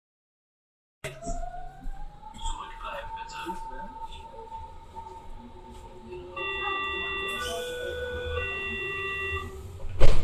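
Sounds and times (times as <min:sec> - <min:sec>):
rumbling S-Bahn train noise: 0:02.1 - 0:10.2
steady electronic tones of Berlin S-Bahn door: 0:06.0 - 0:09.6
multi-pitched beeping door warning signal of Berlin S-Bahn: 0:06.0 - 0:09.7
Berlin S-Bahn door closing with a sharp thud: 0:09.9 - 0:10.2.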